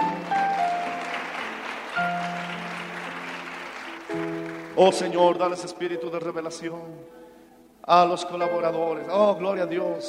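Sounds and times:
audience applause: 0.0 - 5.3
speech: 4.8 - 7.2, 7.9 - 10.0.

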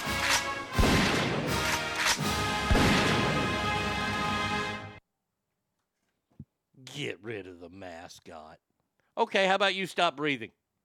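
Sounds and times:
gunshots: 0.0 - 3.8
speech: 7.0 - 10.6.

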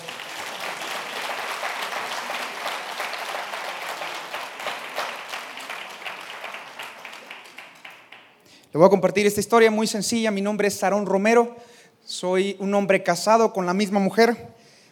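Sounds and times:
audience applause: 0.0 - 8.4
speech: 8.7 - 14.5.

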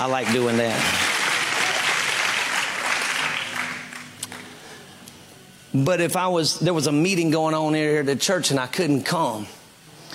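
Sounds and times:
speech: 0.0 - 1.0, 5.7 - 9.6
audience clapping: 0.0 - 4.6.

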